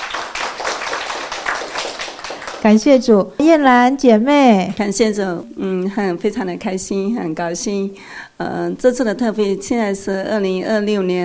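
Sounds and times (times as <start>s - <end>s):
church gathering clapping: 0.0s - 3.0s
speech: 2.6s - 11.2s.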